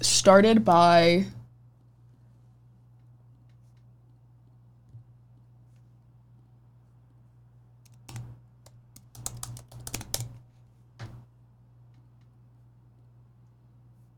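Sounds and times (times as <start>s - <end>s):
low steady hum: 0.0s - 14.1s
speech: 0.1s - 1.4s
typing on a computer keyboard: 7.9s - 10.4s.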